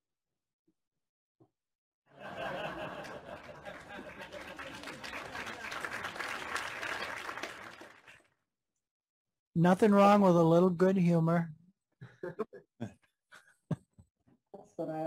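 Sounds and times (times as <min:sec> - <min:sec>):
laughter: 0:02.1 - 0:07.4, 0:12.0 - 0:14.0
audience clapping: 0:02.3 - 0:08.3
speech: 0:09.6 - 0:11.6, 0:12.2 - 0:12.9, 0:14.8 - 0:15.0.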